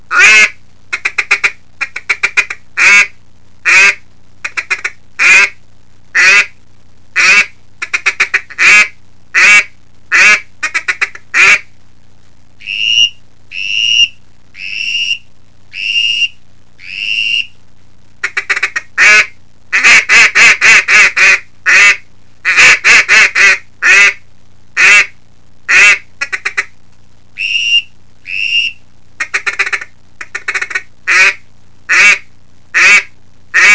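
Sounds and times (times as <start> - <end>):
double reed and whistle duck call combo: 0.1 - 6.6, 7.2 - 11.7, 12.6 - 17.5, 18.2 - 24.2, 24.8 - 26.8, 27.4 - 33.7.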